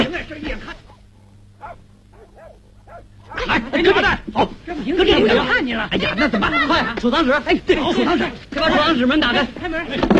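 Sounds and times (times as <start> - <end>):
dog barking: 0.8 - 3.6
speech: 3.8 - 10.1
laughter: 5.0 - 8.3.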